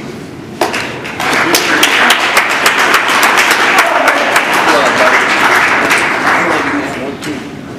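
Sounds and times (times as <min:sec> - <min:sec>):
audience applause and cheering at a speakers' event: 0:01.1 - 0:07.1.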